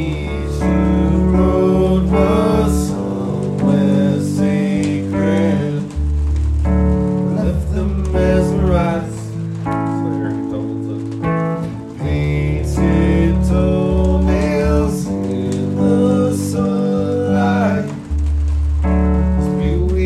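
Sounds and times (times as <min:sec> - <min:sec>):
keyboard music in D: 0:00.0 - 0:20.0
rain: 0:00.0 - 0:20.0.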